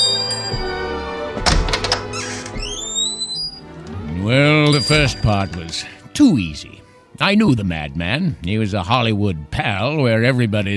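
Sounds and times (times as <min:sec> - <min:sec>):
rising squeaky whines: 0:00.0 - 0:01.0, 0:02.0 - 0:03.8
heavy wooden door thunking shut: 0:00.5 - 0:03.6
speech: 0:04.9 - 0:10.7.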